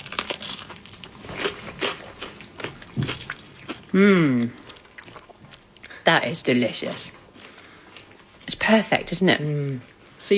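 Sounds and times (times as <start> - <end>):
crunching and chewing homemade food: 0.0 - 6.0, 6.9 - 8.6
speech: 3.9 - 4.6, 6.1 - 7.2, 8.7 - 10.3.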